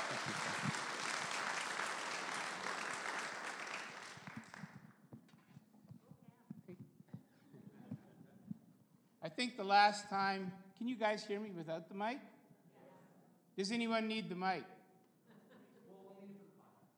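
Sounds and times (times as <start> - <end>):
audience applause: 0.0 - 4.9
speech: 9.3 - 12.3, 13.6 - 14.7.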